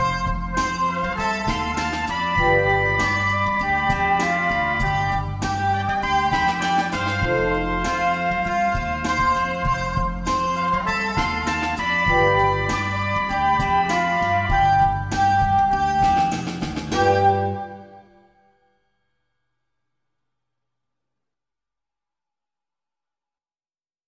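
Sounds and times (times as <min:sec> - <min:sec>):
recorder playing: 0:00.0 - 0:18.4.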